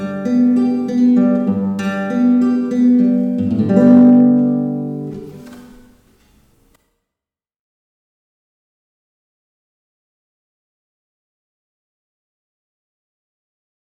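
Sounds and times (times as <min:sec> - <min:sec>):
solo etude: 0:00.0 - 0:06.5.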